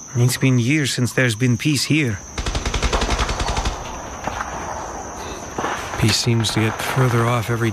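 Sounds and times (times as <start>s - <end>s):
speech: 0.1s - 2.4s, 6.0s - 7.7s
distant automatic gunfire near a village: 2.4s - 7.4s
noisy rumble: 2.4s - 7.7s.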